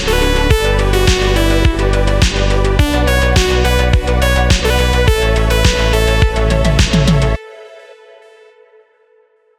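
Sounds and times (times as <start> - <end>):
eighties synthwave: 0.0 - 7.4.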